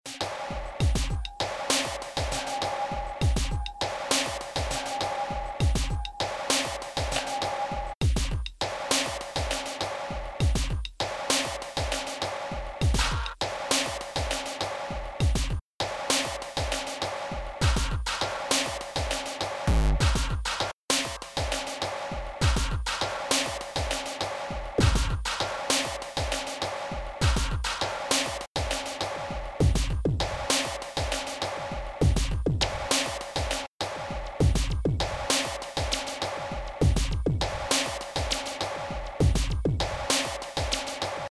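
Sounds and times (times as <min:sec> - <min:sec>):
NI Battery 4 terrorcore drum kit: 0:00.0 - 0:41.3.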